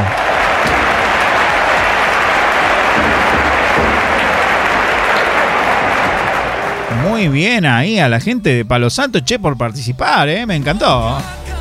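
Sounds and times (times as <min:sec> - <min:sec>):
audience applauding: 0:00.0 - 0:08.3
speech: 0:07.2 - 0:11.5.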